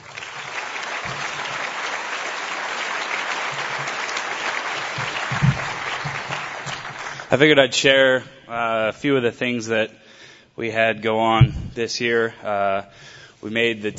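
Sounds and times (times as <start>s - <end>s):
audience round of applause: 0.0s - 7.4s
speech: 7.3s - 10.0s, 10.6s - 13.9s.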